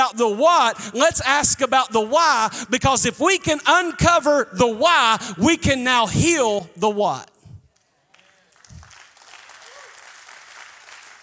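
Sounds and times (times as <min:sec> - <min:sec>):
speech: 0:00.1 - 0:07.3
audience applause: 0:08.1 - 0:11.2.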